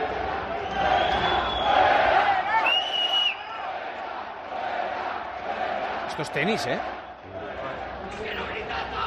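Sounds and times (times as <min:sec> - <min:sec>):
crowd shouting and cheering at a tennis court: 0:00.0 - 0:09.0
yells and whistles: 0:00.6 - 0:01.9, 0:02.5 - 0:03.6
speech: 0:06.2 - 0:07.0.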